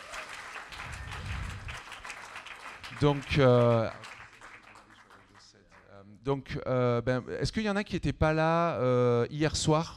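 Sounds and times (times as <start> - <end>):
audience applause: 0.0 - 5.5
speech: 3.0 - 4.1, 6.2 - 9.9.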